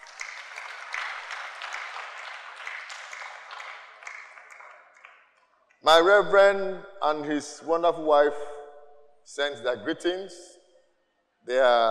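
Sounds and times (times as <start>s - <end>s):
audience clapping for worship team: 0.0s - 5.5s
speech: 5.8s - 8.5s, 9.3s - 10.5s, 11.4s - 11.8s.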